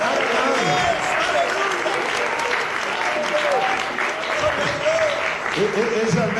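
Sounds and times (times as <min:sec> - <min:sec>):
audience applause: 0:00.0 - 0:06.3.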